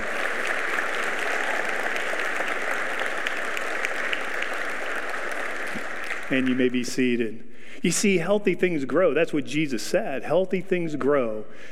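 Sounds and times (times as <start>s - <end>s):
large crowd applause: 0.0s - 7.0s
speech: 6.3s - 11.7s.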